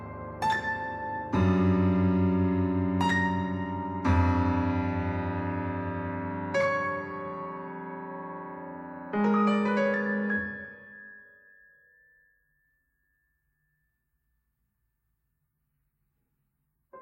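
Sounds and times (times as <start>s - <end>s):
contrasting piano pieces: 0.0s - 12.0s.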